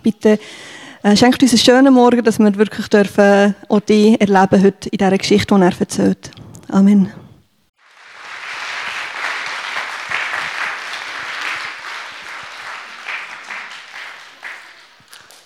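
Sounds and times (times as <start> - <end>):
speech: 0.0 - 7.2
audience applause: 7.8 - 15.4.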